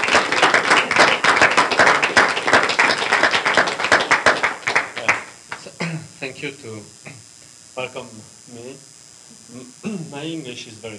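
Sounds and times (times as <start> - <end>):
audience round of applause: 0.0 - 5.7
speech: 6.4 - 7.2, 7.8 - 10.9.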